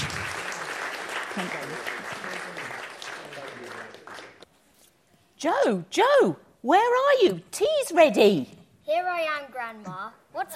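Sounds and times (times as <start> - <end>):
round of applause: 0.0 - 4.5
speech: 1.4 - 2.0, 5.4 - 10.5.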